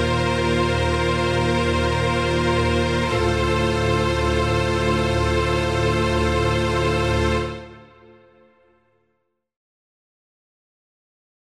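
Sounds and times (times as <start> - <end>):
strings: 0.0 - 8.7.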